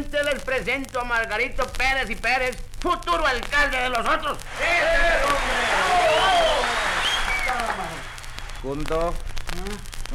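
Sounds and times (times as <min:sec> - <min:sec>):
speech: 0:00.0 - 0:06.8, 0:08.6 - 0:10.1
audience applause: 0:04.5 - 0:08.7.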